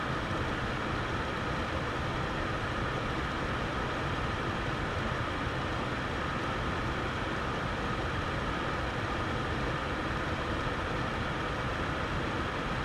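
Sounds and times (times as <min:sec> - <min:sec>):
air purifier running on mid setting: 0:00.0 - 0:12.8.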